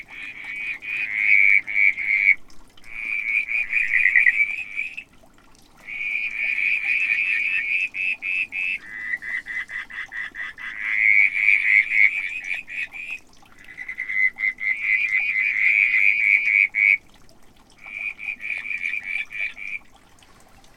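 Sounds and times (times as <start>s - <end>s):
whistling tree frog Litoria ewingii calling: 0.1s - 5.1s, 5.8s - 17.0s.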